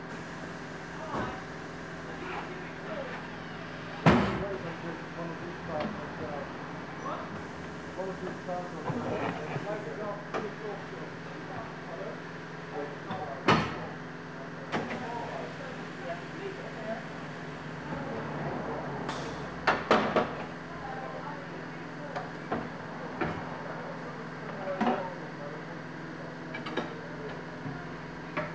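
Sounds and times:
auto repair shop noise during car service: 0.0 - 28.5.

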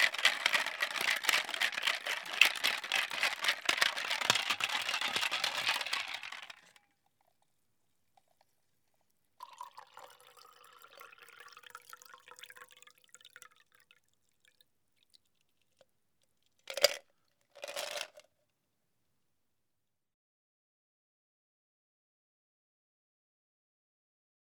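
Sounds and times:
cocktail shaker making a cocktail: 0.0 - 6.8, 17.6 - 18.2.

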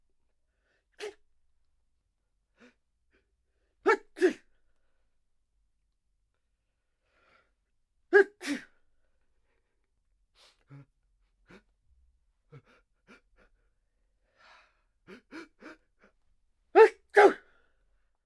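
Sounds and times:
people sneezing: 3.9 - 4.4, 8.2 - 8.7, 16.8 - 17.4.

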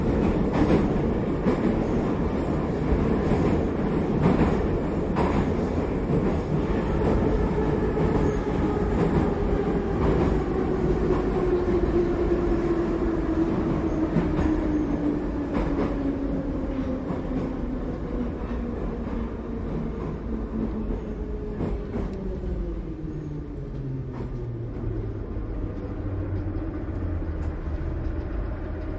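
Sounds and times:
metro train in Moscow: 0.0 - 28.9.

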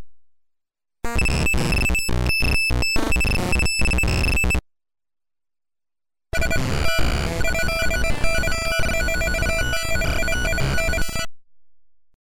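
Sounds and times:
data transmission signal: 1.2 - 4.6, 6.3 - 11.3.

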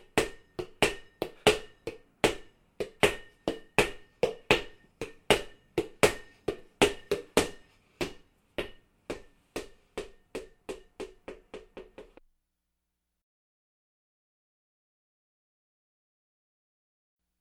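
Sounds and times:
ball knocking: 0.0 - 12.2.

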